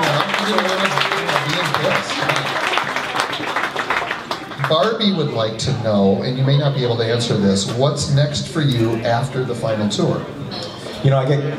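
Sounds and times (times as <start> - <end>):
audience applause: 0.0 - 5.2
speech: 4.7 - 11.5.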